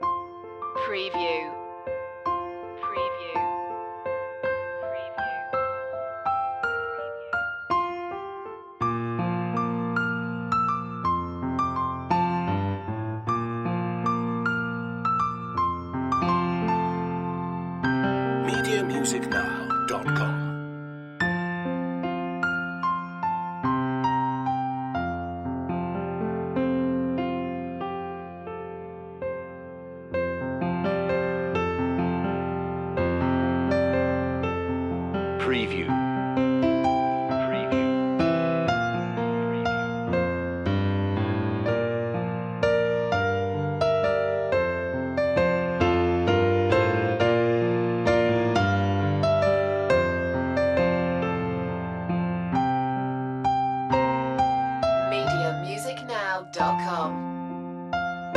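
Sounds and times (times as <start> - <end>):
long piano loop: 0.0 - 58.3.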